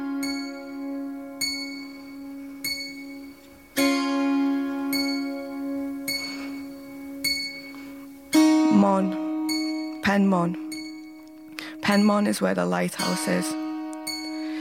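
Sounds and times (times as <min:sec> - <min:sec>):
long clear bell ringing: 0:00.0 - 0:14.6
speech: 0:08.8 - 0:09.2, 0:10.0 - 0:10.6, 0:11.9 - 0:13.6.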